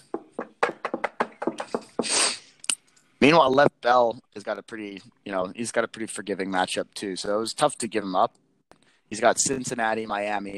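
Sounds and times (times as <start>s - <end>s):
quick hollow knocking on wood: 0.0s - 2.1s
rustling hiss: 1.6s - 2.6s
speech: 3.2s - 8.4s, 9.1s - 10.5s.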